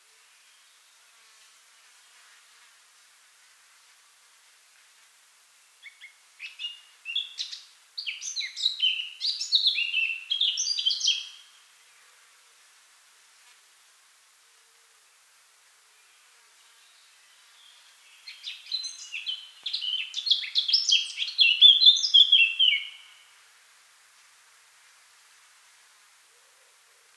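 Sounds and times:
Eurasian blackcap song: 0:05.8 - 0:11.6, 0:16.0 - 0:23.3.

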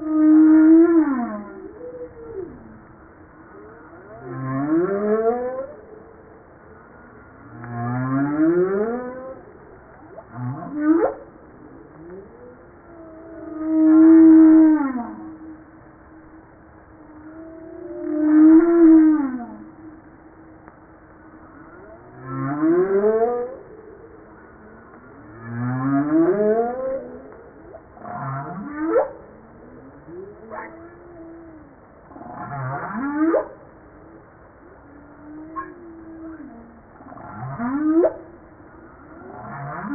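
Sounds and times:
humpback whale song moans and whoops: 0:00.0 - 0:39.9.

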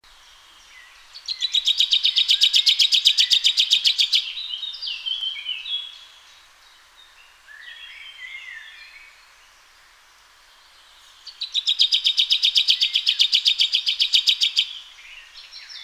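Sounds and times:
common chaffinch Fringilla coelebs singing: 0:00.3 - 0:06.3, 0:10.9 - 0:15.8.

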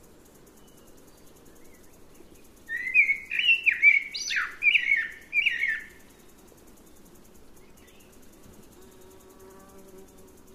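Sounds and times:
Eurasian blackbird warbling fluty notes: 0:02.7 - 0:05.8.

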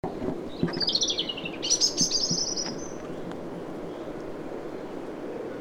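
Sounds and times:
background rumble: 0:00.0 - 0:05.5
European robin giving warbled phrases: 0:00.6 - 0:03.2.

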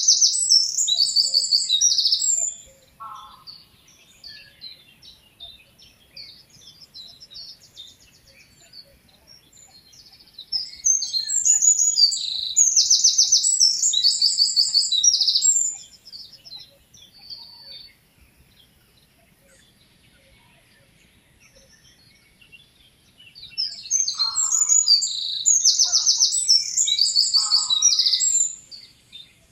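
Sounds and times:
Eurasian wren singing trills: 0:00.0 - 0:20.1, 0:21.2 - 0:29.5.

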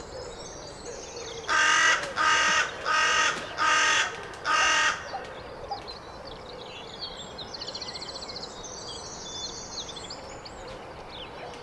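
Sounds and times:
carrion crow cawing: 0:01.5 - 0:05.1.

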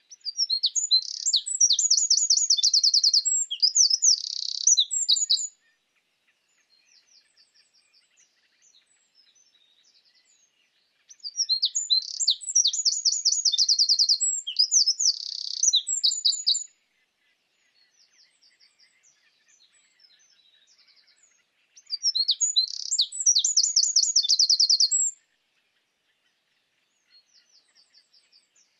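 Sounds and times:
Eurasian wren song: 0:00.0 - 0:05.7, 0:06.5 - 0:16.8, 0:17.6 - 0:25.3.

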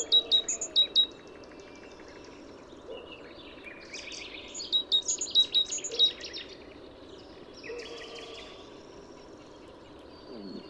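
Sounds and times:
great tit Parus major giving soft chirps: 0:00.0 - 0:10.6.

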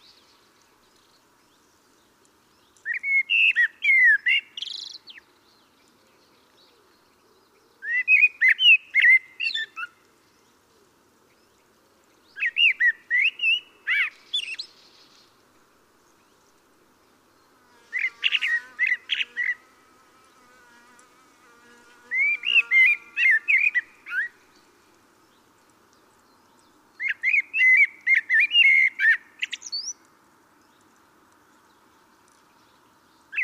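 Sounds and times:
common blackbird singing: 0:02.8 - 0:05.2, 0:06.9 - 0:09.9, 0:12.3 - 0:14.7, 0:22.1 - 0:24.4, 0:26.6 - 0:30.0
insect-like buzz: 0:17.2 - 0:25.7.

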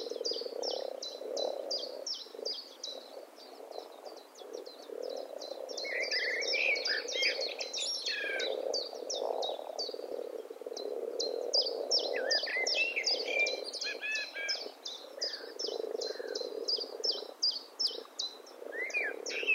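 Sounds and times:
common blackbird sharp calls: 0:00.0 - 0:19.5.

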